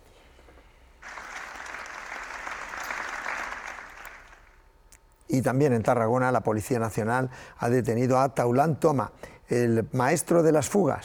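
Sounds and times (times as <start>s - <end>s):
applause after minute of silence: 1.0s - 4.7s
speech: 5.3s - 11.0s.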